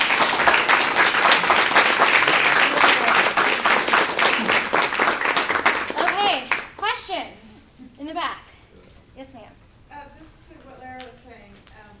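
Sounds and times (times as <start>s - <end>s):
round of applause: 0.0s - 6.9s.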